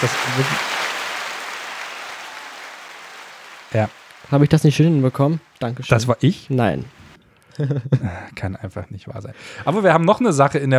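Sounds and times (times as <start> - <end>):
speech: 0.0 - 0.9, 3.7 - 7.0, 7.6 - 10.7
applause sound effect from a button: 0.0 - 5.6
laughter: 7.6 - 8.2.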